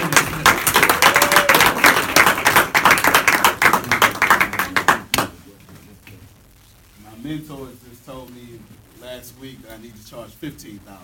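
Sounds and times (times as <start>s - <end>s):
audience applause: 0.0s - 5.4s
speech: 7.4s - 11.0s.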